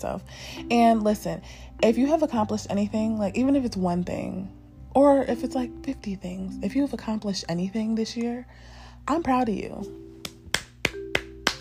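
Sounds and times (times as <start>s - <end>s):
speech: 0.0s - 10.0s
low steady hum: 0.0s - 11.6s
hand claps: 10.2s - 11.6s.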